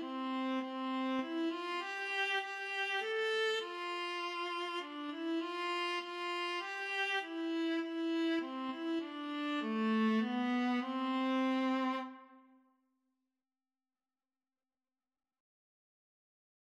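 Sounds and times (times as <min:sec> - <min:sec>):
viola and cello duet: 0:00.0 - 0:12.3.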